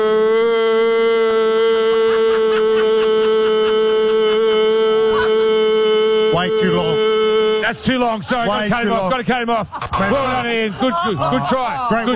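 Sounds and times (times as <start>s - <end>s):
person imitating a long cow moo: 0.0s - 7.7s
laughter: 1.2s - 12.1s
speech: 7.7s - 12.1s.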